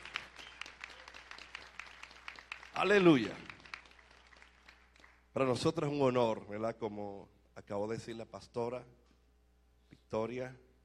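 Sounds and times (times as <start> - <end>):
audience applauding: 0.0 - 5.2
speech: 2.8 - 3.5, 5.4 - 9.0, 10.1 - 10.6.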